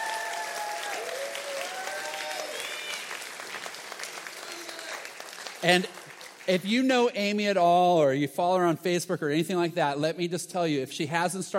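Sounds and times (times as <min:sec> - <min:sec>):
audience applause: 0:00.0 - 0:06.6
speech: 0:05.6 - 0:11.5.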